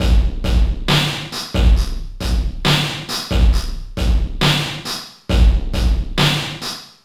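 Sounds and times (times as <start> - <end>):
FX kit beats: 0.0 - 6.9.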